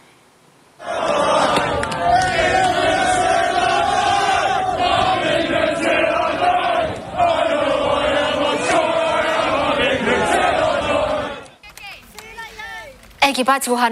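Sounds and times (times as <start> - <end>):
protesters shouting: 0.8 - 11.4
speech: 13.4 - 13.9.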